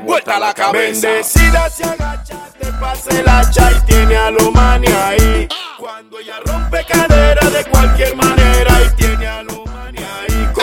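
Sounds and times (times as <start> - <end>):
95 bpm music intro breakdown: 1.3 - 5.5, 6.5 - 10.6.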